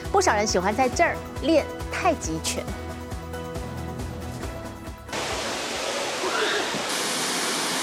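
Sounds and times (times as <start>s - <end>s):
speech: 0.2s - 2.9s
waterfall rushing: 5.1s - 7.8s.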